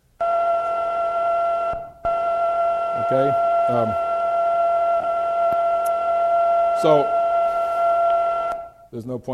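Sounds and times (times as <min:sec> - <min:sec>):
sonified radio signal of the fastest-known pulsar, high-pitched buzzing tone: 0:00.2 - 0:08.9
speech: 0:03.1 - 0:04.1, 0:06.8 - 0:07.2, 0:08.9 - 0:09.3.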